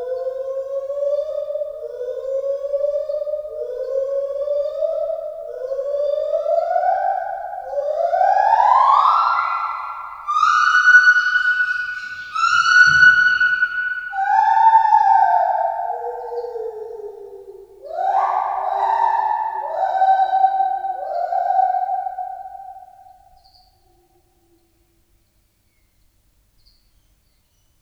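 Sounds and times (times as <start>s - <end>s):
white-handed gibbon song of swooping hoots: 0.0s - 23.0s.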